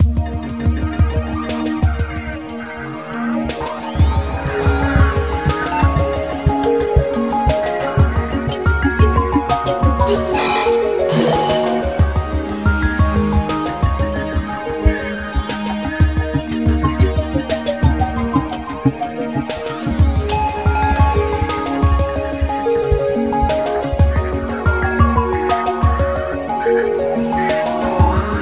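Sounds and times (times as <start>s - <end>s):
mellow music: 0.0s - 28.4s.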